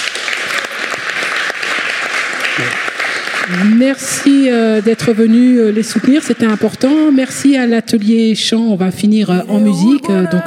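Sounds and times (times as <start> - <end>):
audience applauding loudly: 0.0 - 7.1
speech: 2.6 - 2.8, 3.5 - 10.4.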